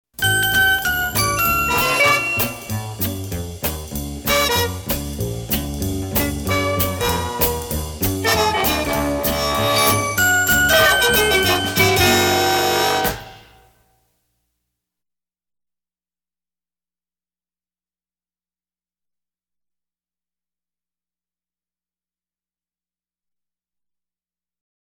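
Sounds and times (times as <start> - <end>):
happy jingle: 0.2 - 13.6.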